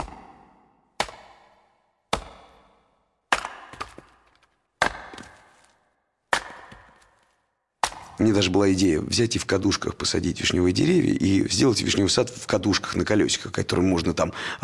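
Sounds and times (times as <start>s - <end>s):
axe chopping wood: 0.0s - 8.2s
speech: 8.2s - 14.6s.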